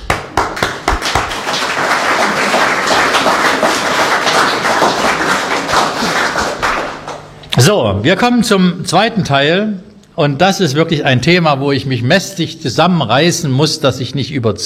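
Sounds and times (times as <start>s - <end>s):
audience applause: 0.0s - 7.4s
speech: 7.6s - 14.6s.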